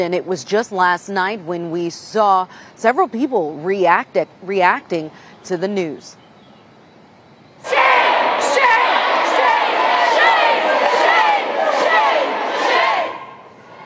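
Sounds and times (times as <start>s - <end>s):
speech: 0.0s - 6.2s
protesters screaming shame in legislature gallery: 7.6s - 13.4s.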